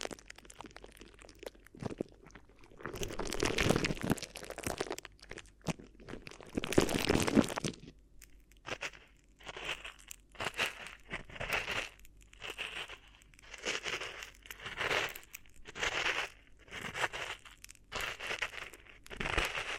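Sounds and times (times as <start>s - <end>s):
plastic or paper crinkling and crumpling: 0.0s - 19.7s.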